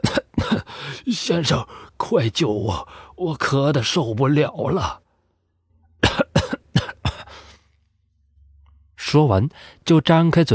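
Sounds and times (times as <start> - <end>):
old man coughing: 0.0 - 0.8, 6.0 - 7.5
speech: 1.0 - 5.0, 9.1 - 10.5.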